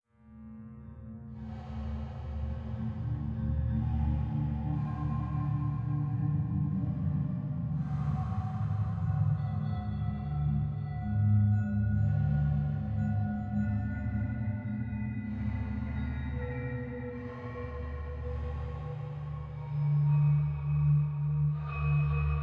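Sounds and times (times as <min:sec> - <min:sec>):
banya ambient music: 0:01.4 - 0:22.4.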